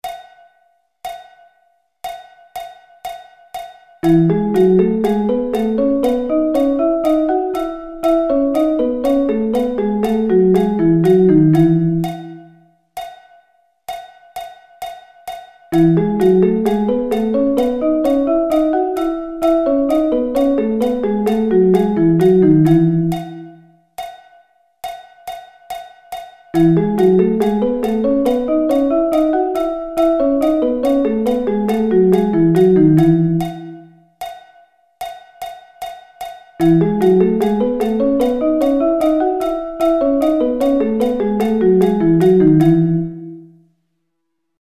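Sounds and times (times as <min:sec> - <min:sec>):
notes in thirds in E: 0:04.0 - 0:12.6, 0:15.8 - 0:23.6, 0:26.6 - 0:33.9, 0:36.6 - 0:43.5.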